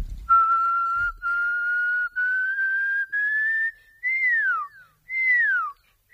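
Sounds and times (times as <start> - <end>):
person whistling an imitation of a pearl-spotted owl call: 0.3 - 6.1.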